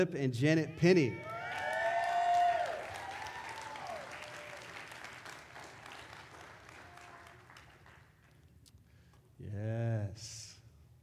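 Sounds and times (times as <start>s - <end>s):
speech: 0.0s - 1.7s
crowd cheering: 0.8s - 8.4s
audience applause: 1.2s - 8.4s.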